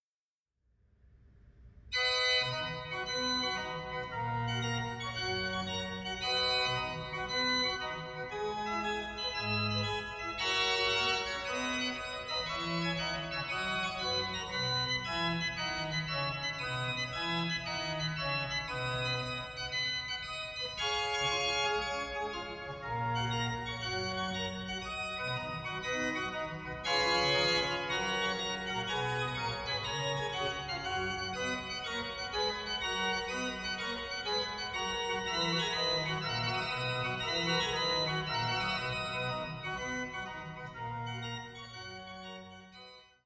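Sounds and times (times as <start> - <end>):
prelude and fugue: 2.0 - 43.2.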